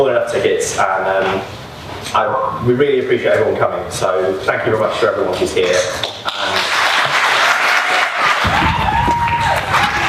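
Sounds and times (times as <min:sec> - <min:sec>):
speech: 0:00.0 - 0:06.6
audience applause: 0:06.3 - 0:10.0.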